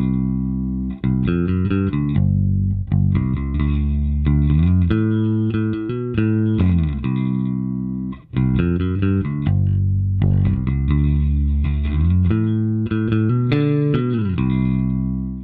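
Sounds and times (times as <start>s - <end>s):
P bass and J bass electric bass guitars compared: 0.0s - 15.4s.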